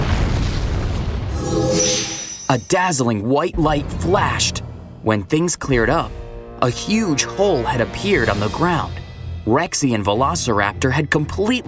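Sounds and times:
crackling debris: 0.0 - 1.3
crashing explosion: 0.0 - 2.7
speech: 2.5 - 11.6.

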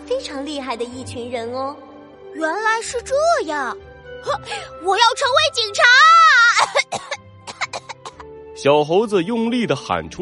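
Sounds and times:
speech: 0.1 - 7.0, 8.6 - 10.1
person coughing after choking on saliva: 6.6 - 8.3.

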